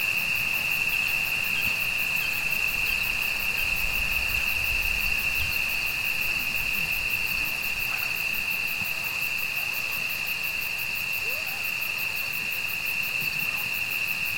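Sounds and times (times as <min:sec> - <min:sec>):
insect drone at night in the mountains: 0:00.0 - 0:14.3
faint calls: 0:11.2 - 0:11.7.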